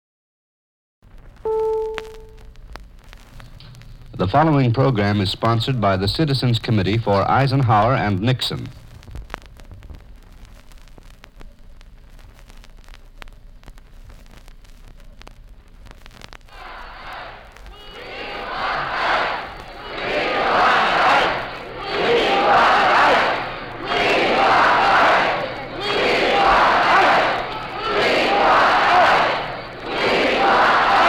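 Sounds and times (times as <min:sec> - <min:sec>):
speech: 0:01.4 - 0:01.7, 0:04.2 - 0:08.8
large enthusiastic auditorium crowd cheering: 0:16.5 - 0:31.0.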